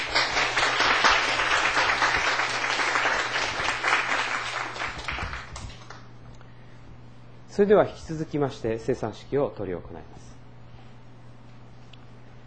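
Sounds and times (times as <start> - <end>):
audience applause: 0.0 - 6.1
speech: 7.6 - 10.3.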